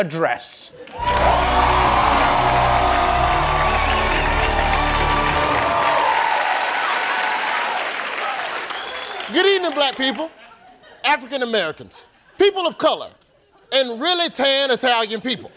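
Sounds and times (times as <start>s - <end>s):
speech: 0.0s - 2.9s, 9.3s - 10.4s, 11.0s - 15.5s
studio audience cheers and whoops: 0.9s - 9.3s
studio audience applause: 0.9s - 10.4s.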